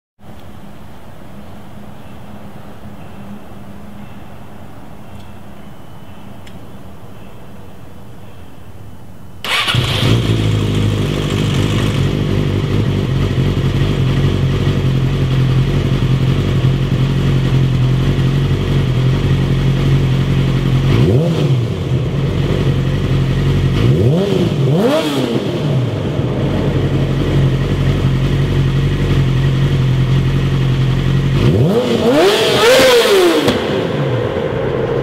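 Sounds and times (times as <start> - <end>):
Yamaha R6 motorcycle exhaust: 9.4 - 35.0.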